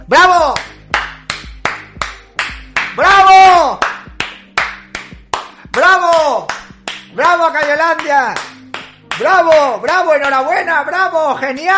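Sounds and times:
speech: 0.1 - 0.4, 7.6 - 8.5, 9.2 - 11.7
slow rhythmic hand claps: 0.4 - 10.5.

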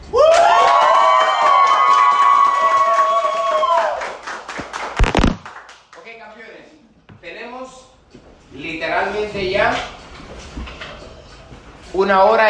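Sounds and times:
audience cheering: 0.1 - 5.4
audience applause: 0.3 - 5.8
speech: 12.0 - 12.4.

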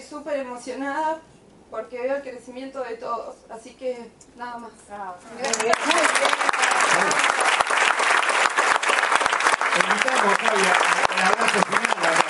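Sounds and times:
speech: 0.0 - 7.3, 9.8 - 12.2
audience applause: 5.4 - 12.2.

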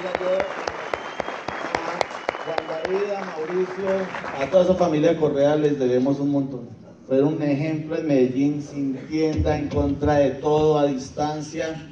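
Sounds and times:
applause: 0.0 - 4.8
speech: 2.9 - 11.9.

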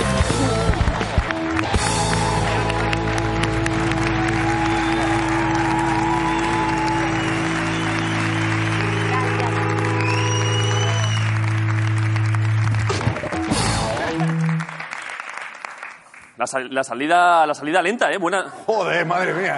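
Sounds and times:
sustained musical backdrop: 0.0 - 15.0
audience applause: 0.0 - 16.5
speech: 16.5 - 19.5.

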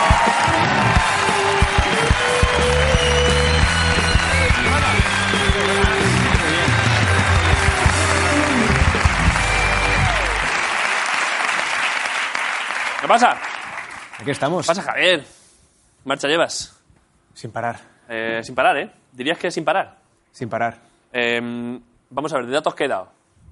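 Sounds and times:
audience applause: 0.0 - 14.4
speech: 13.1 - 13.5, 14.2 - 15.4, 16.0 - 16.8, 17.4 - 23.2.

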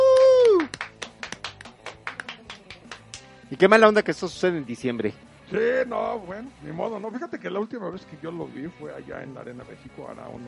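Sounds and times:
few hands clapping: 0.0 - 3.4
speech: 3.5 - 10.4.

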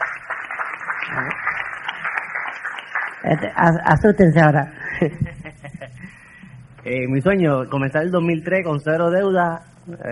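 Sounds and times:
audience applause: 0.0 - 3.6
speech: 1.1 - 1.6, 3.2 - 5.3, 6.8 - 10.1
laughter: 4.8 - 6.2.

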